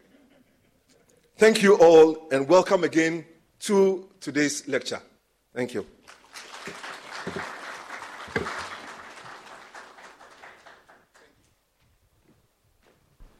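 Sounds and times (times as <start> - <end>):
speech: 1.4 - 6.0
audience applauding for the president at a lecture: 6.0 - 11.4.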